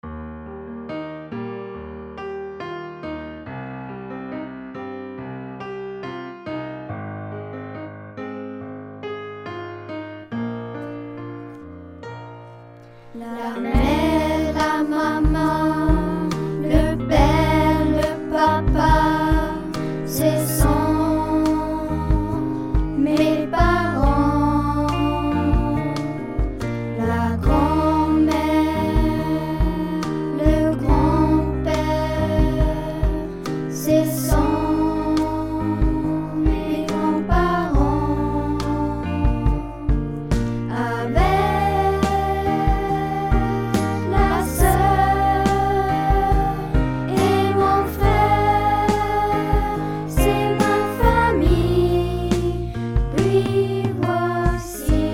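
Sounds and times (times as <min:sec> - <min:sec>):
vocals: 0:12.8 - 0:55.1.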